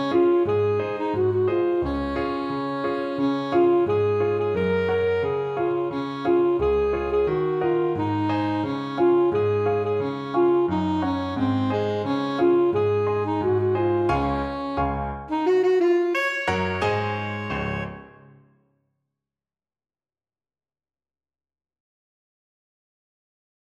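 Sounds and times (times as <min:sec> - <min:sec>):
saxophone: 0:00.0 - 0:18.3.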